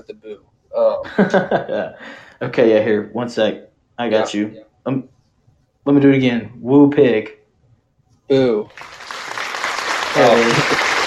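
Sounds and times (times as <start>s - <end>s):
laughter: 0.0s - 2.8s, 10.0s - 11.0s
speech: 0.0s - 5.2s, 5.8s - 7.4s, 8.3s - 9.2s, 10.1s - 10.8s
applause sound effect: 8.7s - 11.0s.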